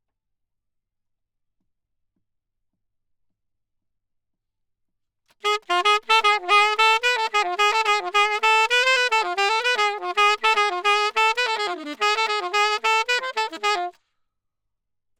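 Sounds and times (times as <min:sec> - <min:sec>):
saxophone: 0:05.4 - 0:13.9.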